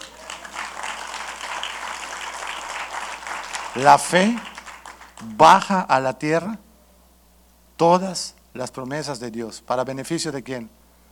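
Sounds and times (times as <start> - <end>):
audience applause: 0.0 - 5.3
speech: 3.7 - 4.5, 5.2 - 6.6, 7.8 - 10.8.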